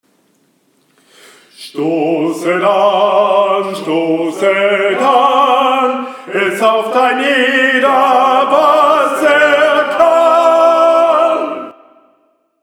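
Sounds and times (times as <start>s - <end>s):
tenor singing: 1.5s - 12.2s.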